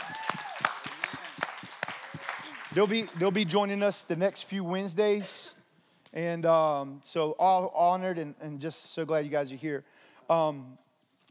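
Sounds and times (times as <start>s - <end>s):
congregation clapping at an evening church service: 0.0s - 4.4s
speech: 2.8s - 5.5s, 6.1s - 10.8s.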